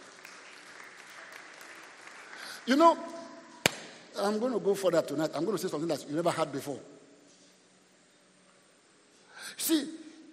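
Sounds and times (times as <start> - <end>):
audience clapping hands: 0.0 - 4.0
speech: 2.6 - 3.2, 4.2 - 6.9.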